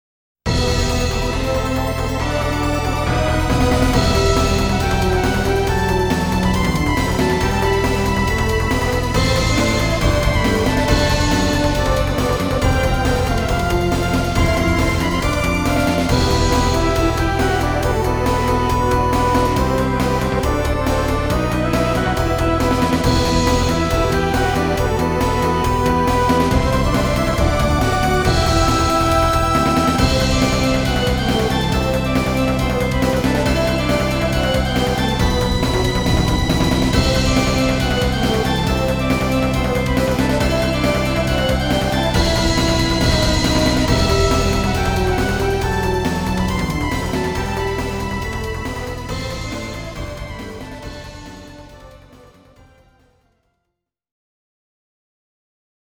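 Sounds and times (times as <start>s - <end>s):
rhythmic music: 0.5s - 52.4s.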